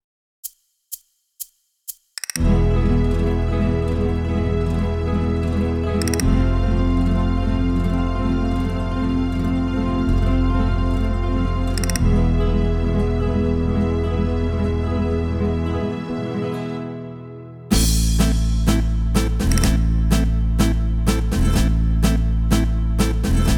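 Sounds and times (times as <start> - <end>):
tango flamenco music: 2.4 - 23.5.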